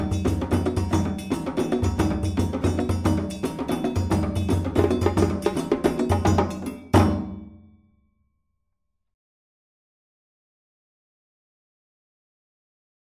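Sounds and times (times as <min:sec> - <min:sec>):
djembe: 0:00.0 - 0:07.6.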